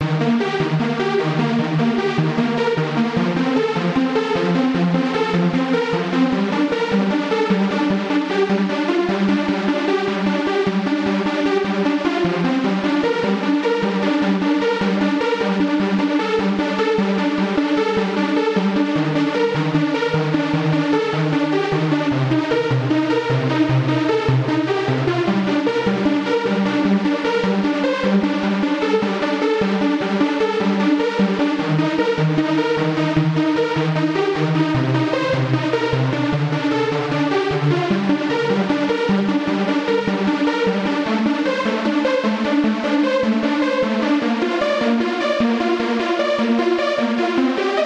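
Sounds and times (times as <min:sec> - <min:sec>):
lead melody: 0:00.0 - 0:47.8.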